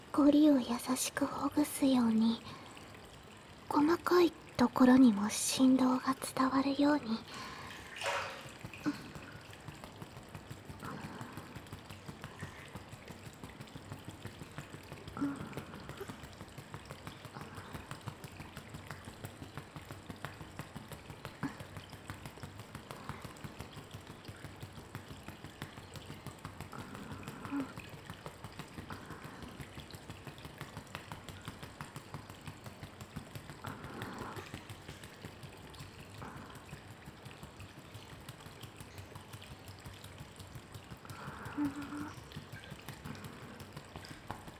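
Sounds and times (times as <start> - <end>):
fingertips tapping during an ASMR massage: 0.0 - 44.5
speech: 0.2 - 2.6, 3.7 - 7.5.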